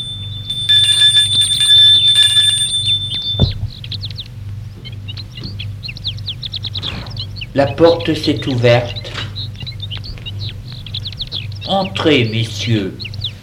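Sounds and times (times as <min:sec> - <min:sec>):
doorbell ringing: 0:00.0 - 0:03.8
speech: 0:07.6 - 0:09.0, 0:11.7 - 0:13.0.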